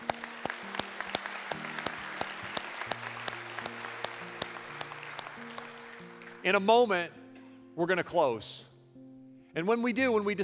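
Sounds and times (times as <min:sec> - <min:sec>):
church congregation clapping after a prayer: 0:00.0 - 0:06.7
speech: 0:06.4 - 0:07.2, 0:07.8 - 0:08.7, 0:09.6 - 0:10.4.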